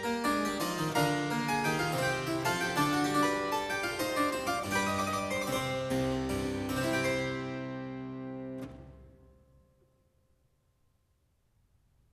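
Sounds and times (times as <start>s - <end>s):
harpsichord courante in D minor: 0.0s - 9.5s.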